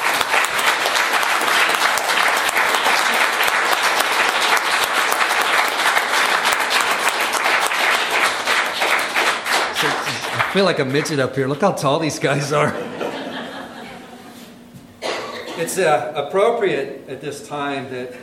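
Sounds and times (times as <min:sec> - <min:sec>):
audience hand clapping: 0:00.0 - 0:12.7
laughter: 0:09.8 - 0:11.0, 0:12.2 - 0:14.6
speech: 0:10.6 - 0:12.9, 0:15.6 - 0:18.2.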